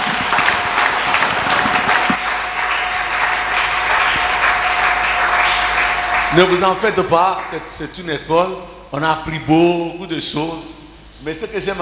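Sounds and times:
church congregation clapping to acclaim the Lord: 0.0s - 8.5s
steady humming tone: 0.0s - 11.7s
speech: 6.4s - 11.7s.

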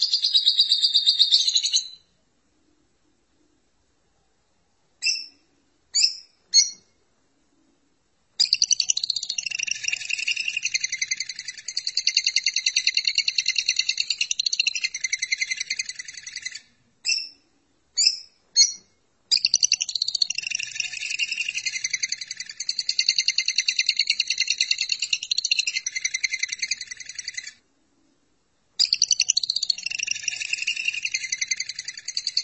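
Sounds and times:
lovebird chattering trill: 0.0s - 2.0s, 8.4s - 17.4s, 18.0s - 27.6s, 28.8s - 32.4s.

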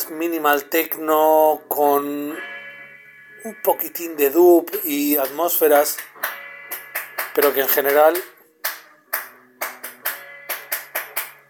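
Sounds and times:
speech: 0.1s - 2.5s, 3.4s - 6.3s, 7.4s - 8.3s
person in the street clapping beneath a window: 5.2s - 11.4s
music playing indoors: 6.0s - 11.4s.

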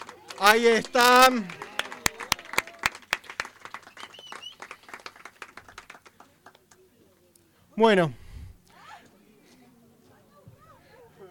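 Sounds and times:
audience applause: 0.0s - 6.3s
speech: 0.4s - 1.6s, 7.8s - 8.2s.

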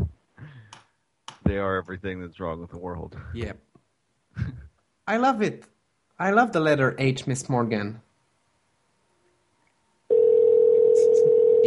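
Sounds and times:
speech: 1.5s - 3.7s, 5.1s - 8.1s
telephone dial tone after call hung up: 10.1s - 11.6s.

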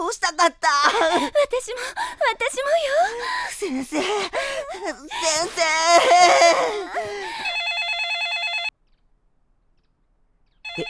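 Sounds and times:
speech: 0.3s - 7.5s
telephone ringing: 7.4s - 8.7s, 10.7s - 10.8s.

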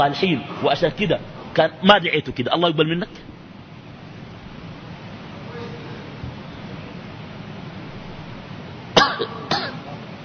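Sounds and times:
speech: 0.0s - 3.3s
quiet room hiss: 0.0s - 10.2s
man coughing and clearing his throat at a microphone: 9.0s - 9.9s.

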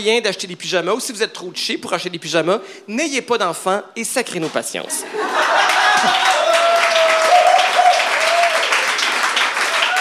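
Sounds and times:
speech: 0.0s - 6.3s
laughter: 4.9s - 6.6s
audience applause: 5.3s - 9.9s.

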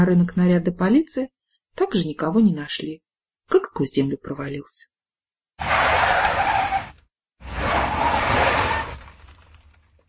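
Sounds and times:
speech: 0.0s - 4.9s, 5.6s - 6.6s
car speeding in and skidding to stop: 5.6s - 9.3s.

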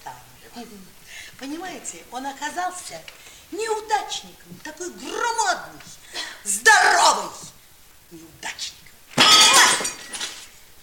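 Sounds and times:
speech: 0.6s - 7.5s, 8.1s - 8.8s
scattered tinkling glass shards: 9.2s - 10.4s
glass bottle smashed against a bar: 9.2s - 10.5s.

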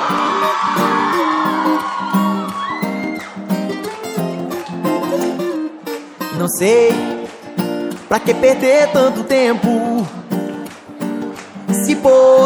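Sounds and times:
crowd shouting and whooping: 0.0s - 6.0s, 7.2s - 10.6s
music playing: 0.0s - 11.8s
speech: 6.5s - 7.1s, 8.1s - 10.2s, 11.7s - 12.4s.

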